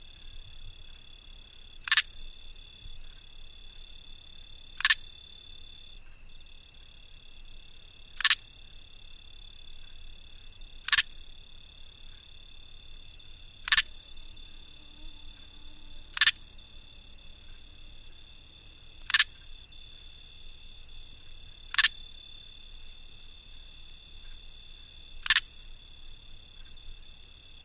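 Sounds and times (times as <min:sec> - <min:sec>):
cricket clicking close: 0:00.1 - 0:04.0, 0:04.6 - 0:06.0, 0:08.2 - 0:14.6, 0:15.3 - 0:27.6.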